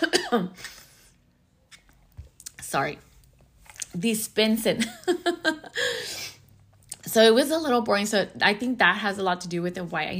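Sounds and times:
person coughing and choking: 0:00.0 - 0:00.6
speech: 0:00.0 - 0:00.8, 0:02.7 - 0:03.1, 0:04.0 - 0:06.2, 0:07.1 - 0:10.1
faint breath: 0:05.8 - 0:06.4.

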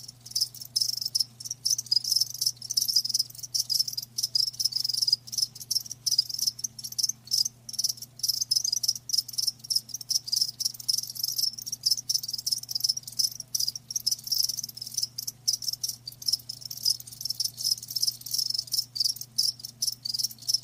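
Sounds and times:
crickets chirping: 0:00.0 - 0:20.6
faint hum: 0:00.0 - 0:20.6.

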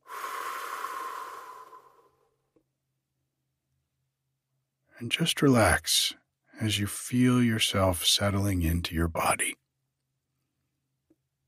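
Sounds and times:
deep breath in and out: 0:00.0 - 0:02.4
speech: 0:05.0 - 0:09.6.

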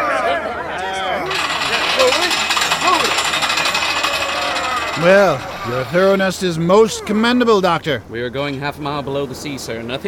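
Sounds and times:
winch being tested: 0:01.2 - 0:07.4
speech: 0:05.0 - 0:10.0.

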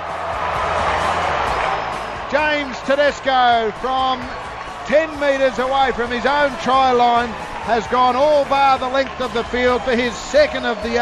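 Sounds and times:
stadium crowd cheering: 0:00.0 - 0:10.9
speech: 0:02.8 - 0:10.9.

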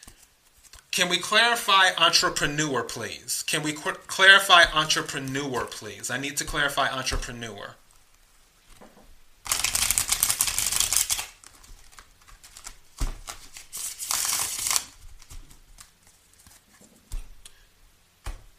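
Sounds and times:
speech: 0:01.0 - 0:07.8
Heaven and Earth Tarot deck cards being shuffled and handled: 0:07.9 - 0:17.4.

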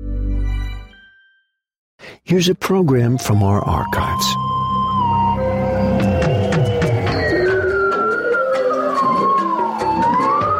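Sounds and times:
speech: 0:02.3 - 0:04.6
bowhead whales calling underwater: 0:05.0 - 0:10.5.

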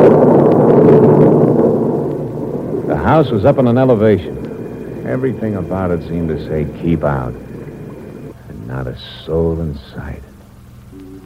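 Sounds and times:
thunder in an electric storm: 0:00.0 - 0:08.3
speech: 0:03.1 - 0:04.4, 0:05.0 - 0:07.5, 0:08.7 - 0:10.3.

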